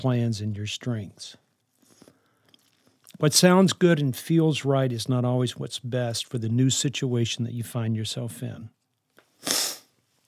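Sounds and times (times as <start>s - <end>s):
speech: 0.0s - 1.4s, 3.2s - 8.8s
person sniffing: 9.3s - 10.0s.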